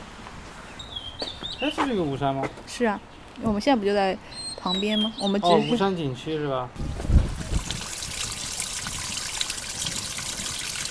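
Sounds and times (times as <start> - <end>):
speech: 1.2 - 7.2
water trickling in a street drain: 7.3 - 10.8.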